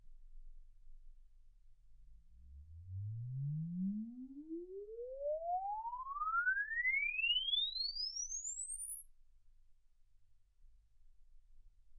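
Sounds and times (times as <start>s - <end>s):
exponential sine sweep from 10 Hz to 24 kHz: 2.5s - 9.9s.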